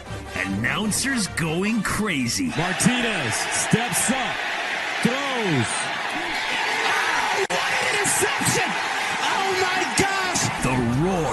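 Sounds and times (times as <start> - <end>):
speech: 0.5 - 5.9
college football stadium crowd cheering: 2.1 - 11.3.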